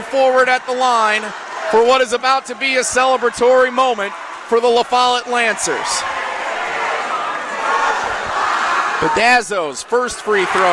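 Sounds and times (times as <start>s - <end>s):
basketball crowd cheering: 0.0s - 10.7s
speech: 0.1s - 6.1s, 9.0s - 10.7s
scattered shouts from basketball crowd: 0.2s - 9.4s.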